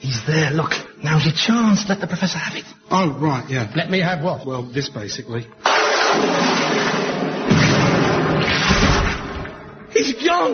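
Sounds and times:
speech: 0.2 - 7.0, 10.0 - 10.5
comedy-sketch explosion blowing someone to smithereens: 5.7 - 9.8.

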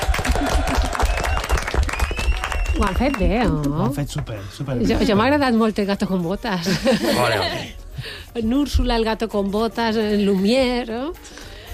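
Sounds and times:
applause from a small group: 0.0 - 3.9
speech: 2.8 - 11.4.

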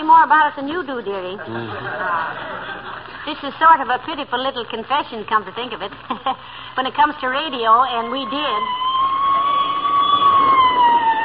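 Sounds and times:
speech: 0.0 - 8.9
laughter: 1.4 - 3.3
police squad car siren wailing: 7.9 - 11.2.

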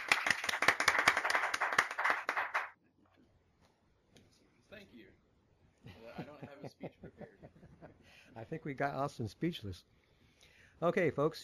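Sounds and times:
small group clapping: 0.0 - 2.8
laughter: 5.8 - 8.0
speech: 8.5 - 10.0, 10.8 - 11.4.

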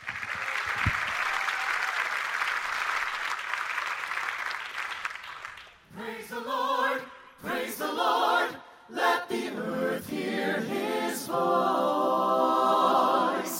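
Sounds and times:
church congregation applauding to welcome a visiting gospel vocal group: 0.0 - 5.9
singing and music: 5.9 - 13.5.

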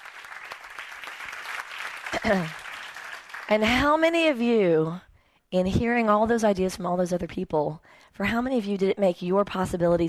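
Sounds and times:
audience applause: 0.0 - 3.7
speech: 2.2 - 2.6, 3.5 - 10.0.

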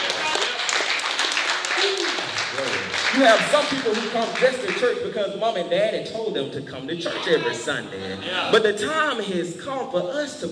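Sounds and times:
audience clapping hands: 0.0 - 5.0
speech: 3.2 - 10.4.

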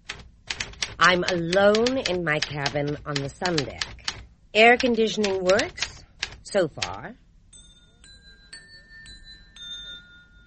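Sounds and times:
speech: 1.0 - 5.9, 6.5 - 7.2
musical dinner chimes: 7.5 - 10.4.

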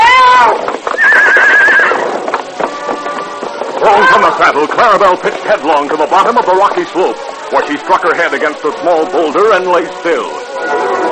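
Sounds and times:
horse whinnying: 0.0 - 4.4
horse hooves: 0.0 - 11.1
speech: 4.4 - 10.4.

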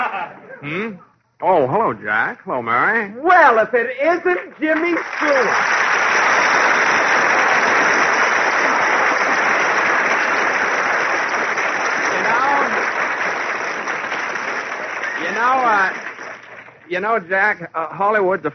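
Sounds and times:
people laughing and whooping: 0.0 - 0.5
speech: 0.6 - 5.8, 15.3 - 16.1, 16.9 - 18.5
audience applause: 4.7 - 16.9.

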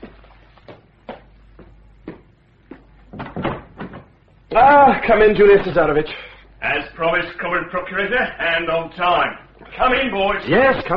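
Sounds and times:
door being opened: 3.1 - 4.2
speech: 4.5 - 10.9.

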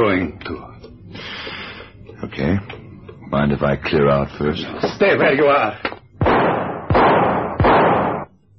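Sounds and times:
speech: 0.0 - 1.3, 2.2 - 5.9
handgun gunshots in a radio drama: 6.2 - 8.3.

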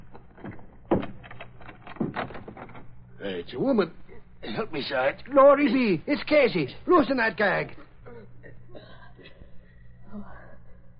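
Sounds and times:
closet door being unlocked and opened: 0.1 - 3.0
speech: 3.2 - 7.8.

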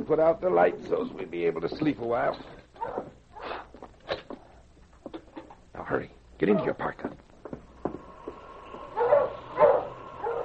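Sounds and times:
speech: 0.0 - 3.1, 5.8 - 7.2
sled dogs barking: 2.8 - 3.5, 8.9 - 10.4.

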